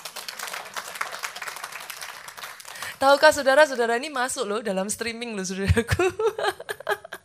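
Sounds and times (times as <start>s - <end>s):
audience clapping: 0.0s - 3.8s
speech: 3.0s - 7.0s.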